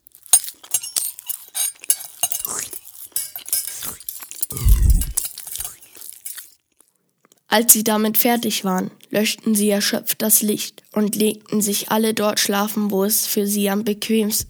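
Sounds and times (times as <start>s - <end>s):
cutlery scraping: 0.1s - 6.6s
dishes and glasses clinking during a meal: 0.2s - 6.5s
speech: 7.5s - 14.4s.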